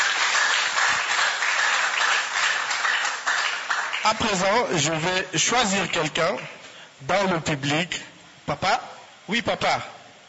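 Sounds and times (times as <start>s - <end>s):
audience applause: 0.0s - 4.7s
speech: 4.1s - 9.9s.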